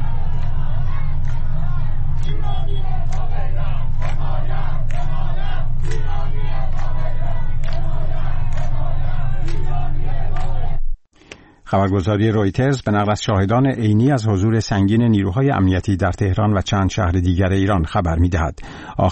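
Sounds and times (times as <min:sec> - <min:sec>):
protest crowd chanting at a gathering in Tehran's District 10: 0:00.0 - 0:10.8
heavy low rumble: 0:00.0 - 0:11.0
speech: 0:11.7 - 0:19.1.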